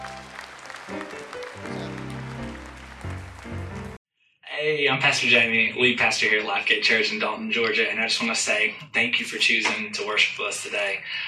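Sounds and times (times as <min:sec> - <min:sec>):
audience hand clapping: 0:00.0 - 0:04.0
speech: 0:04.6 - 0:11.2.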